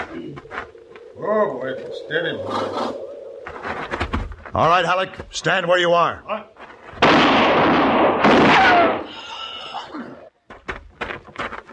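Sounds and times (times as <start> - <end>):
speech: 1.3 - 3.0, 4.6 - 6.5
gunshot: 7.0 - 9.1.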